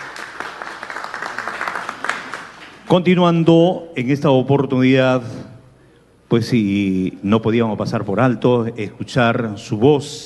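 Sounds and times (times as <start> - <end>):
audience applause: 0.0 - 2.7
speech: 2.9 - 5.5, 6.3 - 10.2.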